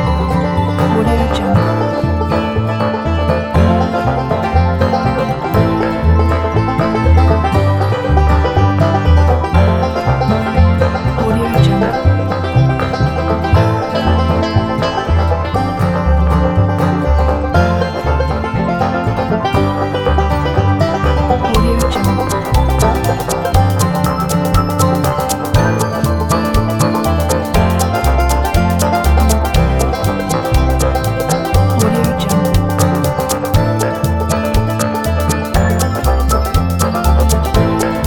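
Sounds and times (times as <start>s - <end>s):
happy jaw harp tune: 0.0s - 38.0s.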